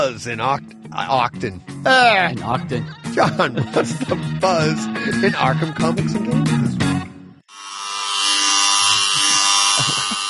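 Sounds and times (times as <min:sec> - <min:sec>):
speech: 0:00.0 - 0:06.8
laughter: 0:02.4 - 0:06.0, 0:09.2 - 0:10.2
electric hair clippers buzzing: 0:07.5 - 0:10.2.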